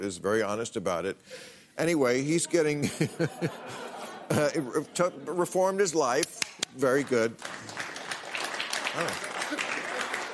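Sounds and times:
speech: 0:00.0 - 0:07.7, 0:09.0 - 0:09.3
laughter: 0:02.4 - 0:05.6, 0:08.9 - 0:10.3
audience applause: 0:06.9 - 0:10.3.

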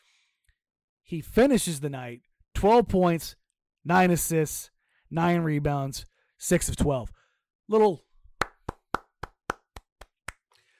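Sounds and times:
speech: 0:01.1 - 0:08.1
golf clap: 0:08.4 - 0:10.4.

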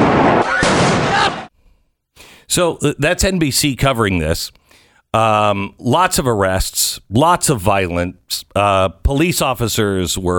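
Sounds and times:
flashbang grenade blast: 0:00.0 - 0:01.5
people shouting: 0:00.4 - 0:01.5
speech: 0:02.6 - 0:10.3.

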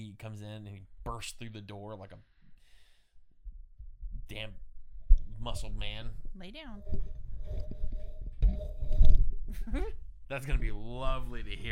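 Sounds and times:
speech: 0:00.2 - 0:02.4, 0:04.3 - 0:04.7, 0:05.4 - 0:07.8, 0:08.6 - 0:11.7
cat rubbing and scraping against a microphone: 0:06.7 - 0:09.3.

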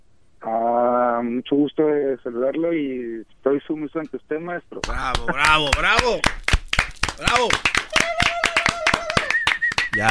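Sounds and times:
speech: 0:01.3 - 0:06.4, 0:07.2 - 0:07.8
rapid hand clapping from a small group: 0:04.8 - 0:10.0.

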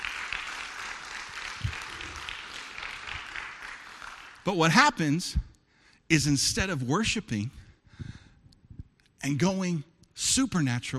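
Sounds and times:
audience applause: 0:00.0 - 0:04.5
speech: 0:04.4 - 0:05.5, 0:06.1 - 0:07.6, 0:09.2 - 0:10.9.

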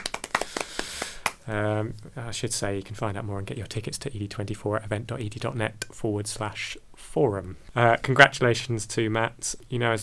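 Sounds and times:
studio audience applause: 0:00.0 - 0:01.4
speech: 0:01.5 - 0:10.0.

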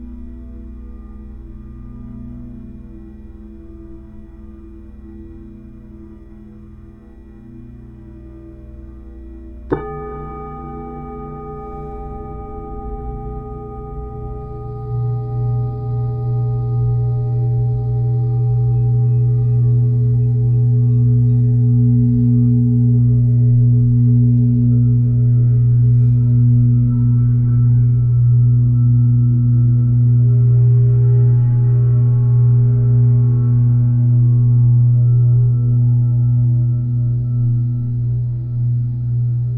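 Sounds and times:
soft low hum: 0:09.6 - 0:39.5
Tibetan singing bowl struck: 0:09.7 - 0:32.3.

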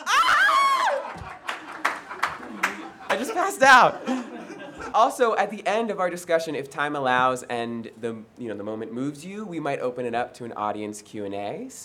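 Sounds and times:
laughter: 0:00.2 - 0:05.2
audience clapping: 0:00.9 - 0:04.6
speech: 0:03.2 - 0:11.8.

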